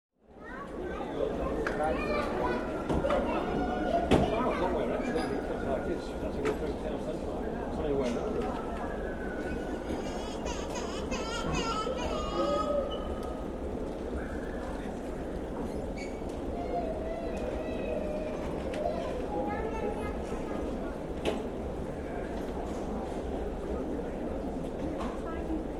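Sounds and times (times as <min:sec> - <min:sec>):
airport ambience: 0:00.3 - 0:25.7.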